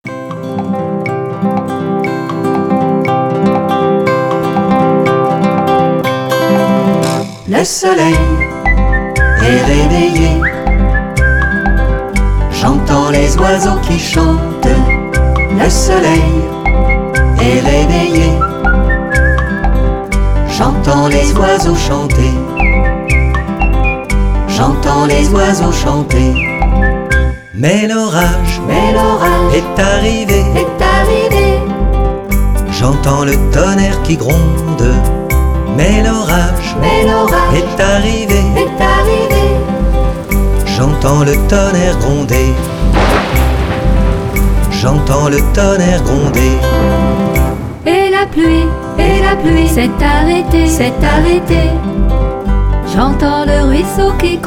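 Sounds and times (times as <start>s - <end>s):
chanson: 0.1s - 54.4s.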